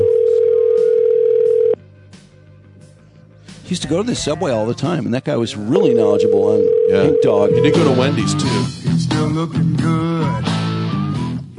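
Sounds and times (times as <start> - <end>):
telephone tone while a call connects: 0.0 - 1.8, 5.8 - 8.1
speech: 3.7 - 10.5.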